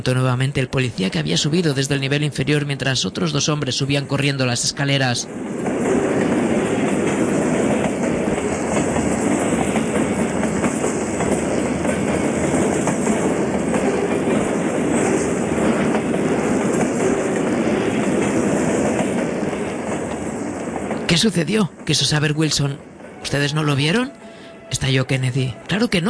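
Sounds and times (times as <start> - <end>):
speech: 0.0 - 5.9, 21.2 - 26.0
train passing by: 0.0 - 26.0
wheels clattering on track: 5.3 - 21.2.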